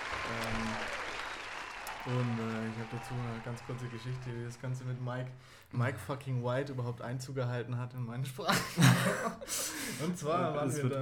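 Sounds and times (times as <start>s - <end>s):
crowd applauding: 0.0s - 5.1s
speech: 2.0s - 11.0s
laughter: 8.5s - 10.2s.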